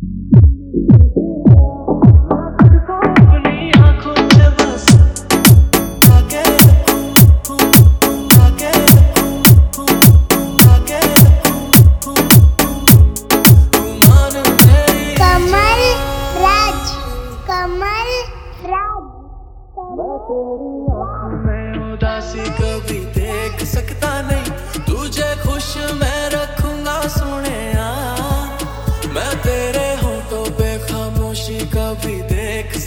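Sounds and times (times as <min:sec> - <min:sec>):
electro drop dance mix: 0:00.4 - 0:18.3, 0:22.4 - 0:32.3.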